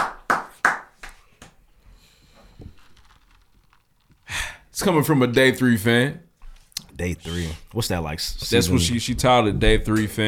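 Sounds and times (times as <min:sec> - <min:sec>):
hand claps: 0:00.0 - 0:01.6
speech: 0:04.8 - 0:06.3, 0:07.0 - 0:10.2.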